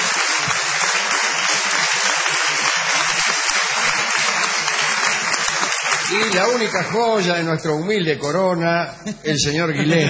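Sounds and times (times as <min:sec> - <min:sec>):
audience applause: 0:00.0 - 0:07.8
speech: 0:06.1 - 0:10.0.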